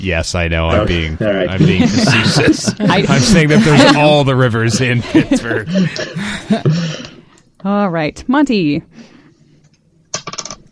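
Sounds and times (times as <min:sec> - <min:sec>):
speech: 0:00.0 - 0:07.0, 0:07.6 - 0:09.1
laughter: 0:01.4 - 0:06.9
dice being rolled: 0:10.1 - 0:10.6.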